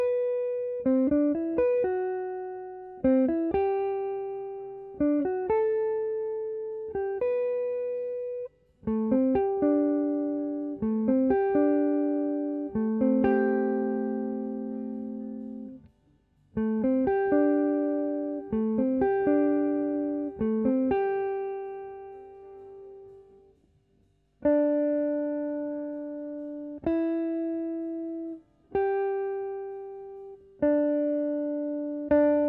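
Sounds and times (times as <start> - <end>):
guitar: 0.0 - 32.4.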